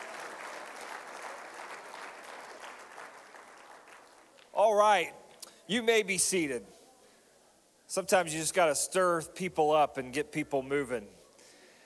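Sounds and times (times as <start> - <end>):
audience hand clapping: 0.0 - 4.6
speech: 4.6 - 6.8, 7.9 - 11.2.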